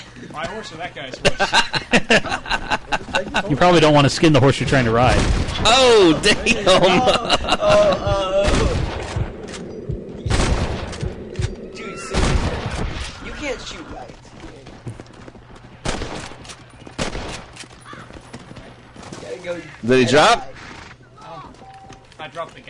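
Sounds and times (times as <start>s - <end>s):
speech: 0.2s - 8.4s, 19.8s - 20.5s
laughter: 1.1s - 3.8s, 5.8s - 8.7s
low rumble: 7.3s - 14.9s
rifle gunfire in a video game: 10.2s - 11.2s, 12.1s - 13.2s, 15.8s - 17.6s.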